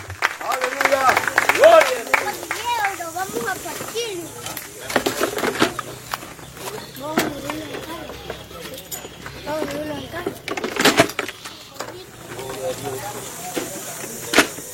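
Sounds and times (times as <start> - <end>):
audience applauding: 0.0 - 4.8
people talking and calling out: 0.0 - 14.7.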